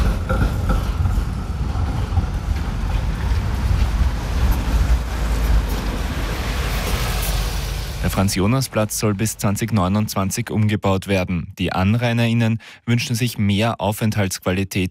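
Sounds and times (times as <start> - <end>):
bus driving past at a city square: 0.0 - 10.1
speech: 8.2 - 14.9.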